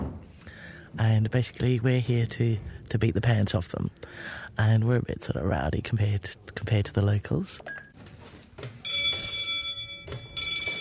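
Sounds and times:
speech: 1.0 - 7.8
studio bell signalling quiet for shooting: 8.8 - 10.7.

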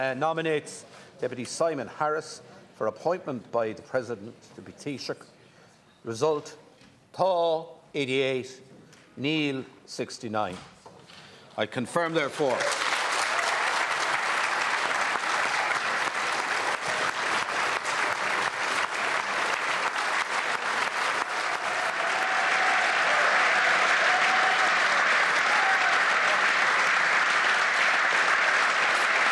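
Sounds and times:
speech: 0.0 - 5.4, 6.0 - 10.8, 11.6 - 12.8
applause from parliamentary government benches: 12.3 - 29.3.

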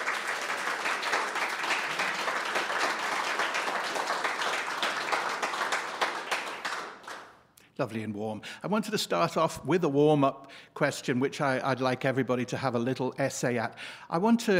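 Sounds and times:
audience applause welcoming a discussion panel at a debate: 0.0 - 7.4
speech: 7.8 - 14.5.

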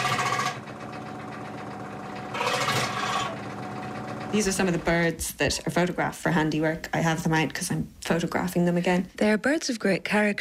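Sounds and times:
small hand saw cutting: 2.3 - 3.4
speech: 4.3 - 10.3.

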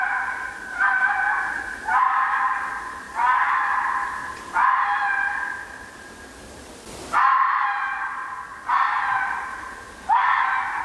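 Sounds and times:
fox screaming calls: 0.0 - 6.0, 7.1 - 10.8.

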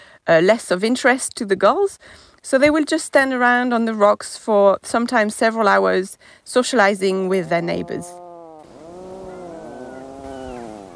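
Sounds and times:
speech: 0.2 - 8.2
puffin groaning call at breeding site: 7.6 - 10.9.

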